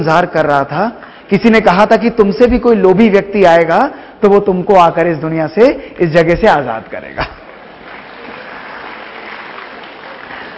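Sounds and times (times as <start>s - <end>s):
speech: 0.0s - 7.4s
crowd applauding: 7.4s - 10.5s.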